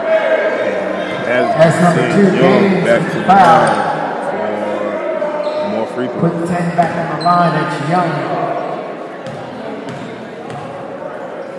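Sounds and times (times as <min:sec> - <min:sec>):
gym crowd hum: 0:00.0 - 0:11.5
commentator talking: 0:01.1 - 0:05.0, 0:05.6 - 0:08.8
speech: 0:01.3 - 0:03.9, 0:06.0 - 0:08.5
basketball dribbled before a free throw: 0:09.2 - 0:10.8.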